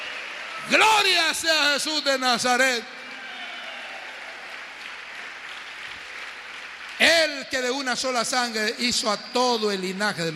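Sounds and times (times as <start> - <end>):
audience applauding: 0.0 - 1.8, 2.9 - 7.6
speech: 0.6 - 3.0, 7.1 - 10.3.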